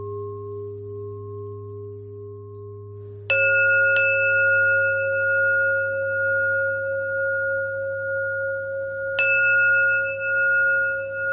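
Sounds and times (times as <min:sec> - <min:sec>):
pentatonic bell melody: 0:03.2 - 0:11.3.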